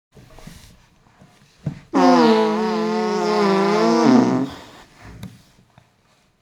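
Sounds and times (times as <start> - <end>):
smelly fart: 2.0 - 4.8.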